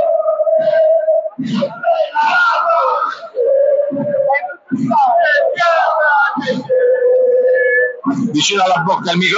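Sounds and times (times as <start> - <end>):
Napoli Basket fans cheering: 0.0 - 9.3
speech: 1.5 - 1.8, 4.8 - 5.1, 8.3 - 9.3.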